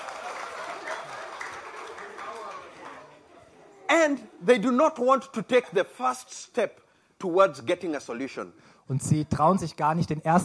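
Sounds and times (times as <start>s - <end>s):
audience applause: 0.0s - 3.2s
speech: 4.0s - 10.4s.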